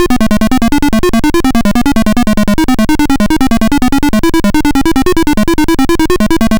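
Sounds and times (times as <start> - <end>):
Apple II chiptune music: 0.0 - 6.5.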